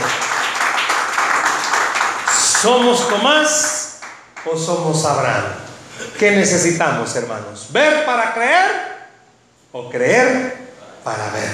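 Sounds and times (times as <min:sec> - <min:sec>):
audience applauding: 0:00.0 - 0:04.5
speech: 0:02.6 - 0:03.8, 0:04.4 - 0:05.6, 0:06.2 - 0:08.9, 0:09.7 - 0:11.5.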